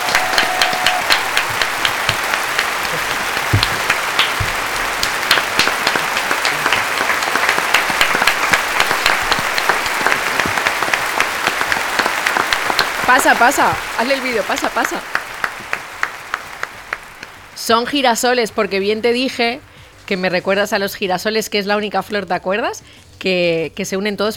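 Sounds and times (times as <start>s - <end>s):
audience applause for a singer-songwriter: 0.0s - 17.6s
speech: 13.1s - 15.2s, 17.7s - 24.3s.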